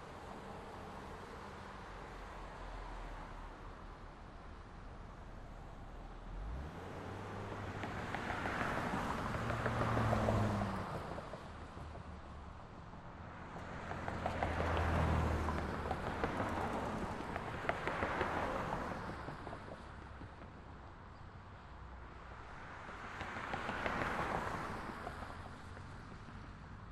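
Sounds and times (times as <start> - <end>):
car traffic at a street intersection: 0.0 - 26.9.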